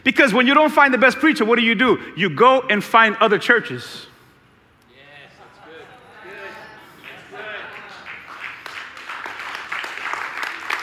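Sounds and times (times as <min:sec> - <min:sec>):
speech: 0:00.0 - 0:04.1
partial audience clapping: 0:07.0 - 0:10.8.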